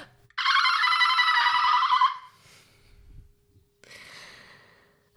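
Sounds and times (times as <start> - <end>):
person imitating a dolphin: 0.0 - 2.3.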